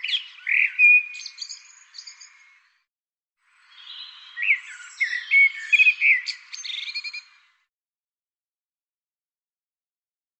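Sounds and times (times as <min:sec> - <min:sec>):
bird twittering with sweeping notes: 0:00.0 - 0:02.6, 0:03.8 - 0:07.4.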